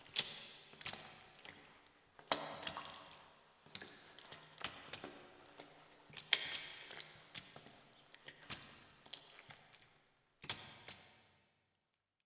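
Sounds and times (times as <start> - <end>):
footsteps in a sewer: 0.0 - 9.8.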